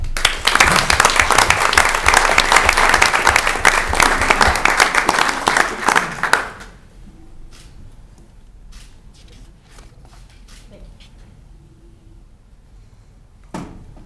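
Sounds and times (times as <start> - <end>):
audience applause welcoming a speaker: 0.0 - 6.7.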